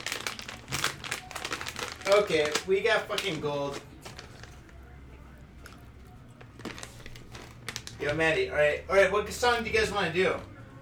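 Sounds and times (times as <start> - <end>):
eating crunchy cheesy cracker snacks: 0.0 - 8.2
speech: 2.1 - 3.9, 8.0 - 10.5.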